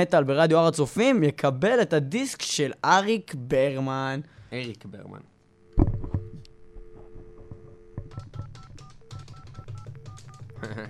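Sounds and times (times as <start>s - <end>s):
speech: 0.0s - 5.3s, 10.6s - 10.8s
steady low hum: 5.5s - 8.2s
telephone number being dialed, DTMF tones: 6.2s - 10.7s
laughter: 10.6s - 10.8s.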